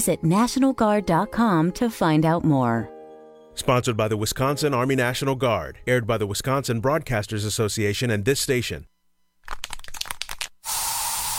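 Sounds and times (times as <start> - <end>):
speech: 0.0 - 3.0, 3.6 - 8.9
aerosol bug spray hissing in a home: 10.6 - 11.3.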